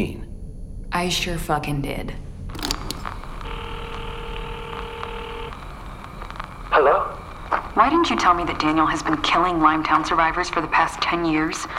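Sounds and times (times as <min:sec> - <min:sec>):
speech: 0:00.0 - 0:00.2, 0:00.9 - 0:02.7, 0:07.8 - 0:11.7
quick clicks: 0:02.5 - 0:06.5
electronic phone ringing tone: 0:02.6 - 0:05.6.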